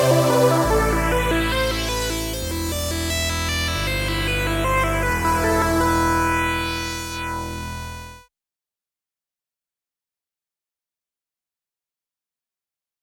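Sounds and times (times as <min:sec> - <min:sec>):
modular synth sawtooth: 0:00.0 - 0:08.0.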